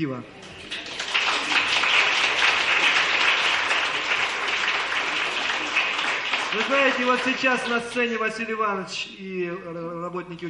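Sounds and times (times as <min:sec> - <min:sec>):
speech: 0:00.0 - 0:00.5, 0:06.5 - 0:10.4
audience applause: 0:00.6 - 0:08.0.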